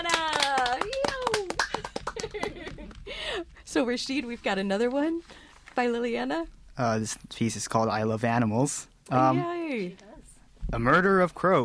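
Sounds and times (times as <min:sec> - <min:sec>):
round of applause clapping: 0:00.0 - 0:03.0
laughter: 0:01.7 - 0:03.0
speech: 0:03.8 - 0:10.0, 0:10.7 - 0:11.6.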